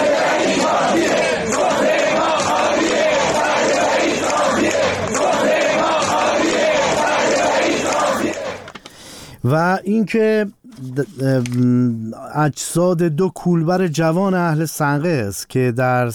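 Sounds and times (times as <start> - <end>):
protesting crowd of nurses chanting: 0.0 - 8.8
speech: 9.4 - 16.1.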